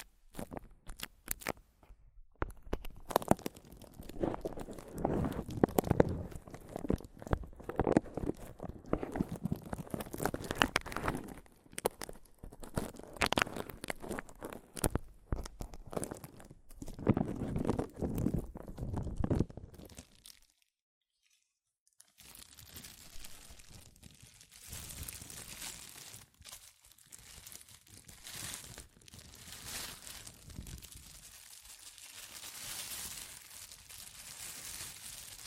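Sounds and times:
microphone tapping and scratching: 1.8 - 19.8.

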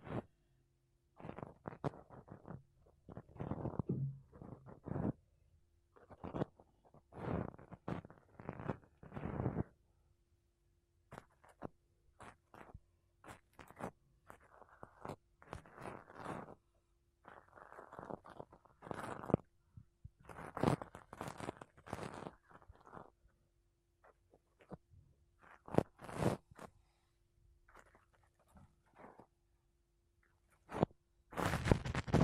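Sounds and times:
makeup brushes and a sponge rubbing across a microphone: 1.2 - 5.2, 6.0 - 9.8, 11.1 - 16.6, 17.2 - 19.5, 20.2 - 23.2, 25.4 - 27.0, 27.7 - 29.3, 30.5 - 32.2.

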